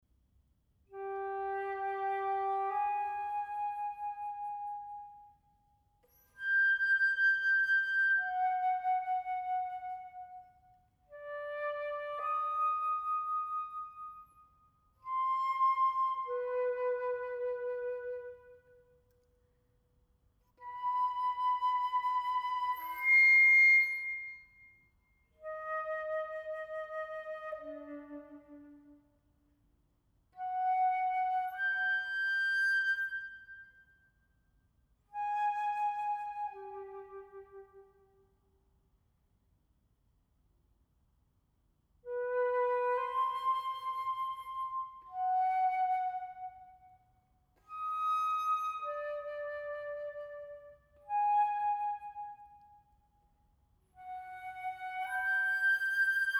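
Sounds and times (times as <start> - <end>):
two flutes playing a sonata andante: 0.9 - 5.4, 6.0 - 14.4, 15.0 - 18.9, 20.6 - 24.7, 25.4 - 29.0, 30.4 - 33.9, 35.2 - 37.9, 42.1 - 46.9, 47.6 - 52.8, 54.0 - 56.3.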